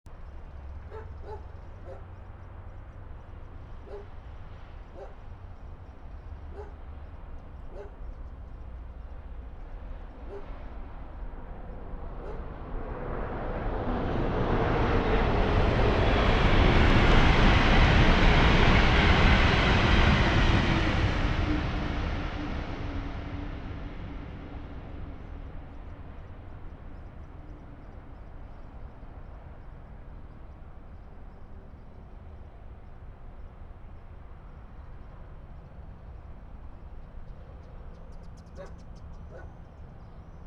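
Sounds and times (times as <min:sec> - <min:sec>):
train: 0:00.1 - 0:40.4.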